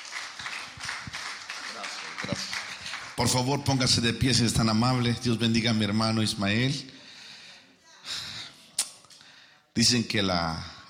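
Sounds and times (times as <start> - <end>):
audience applauding: 0.0 - 3.8
speech: 3.2 - 6.9, 9.8 - 10.8.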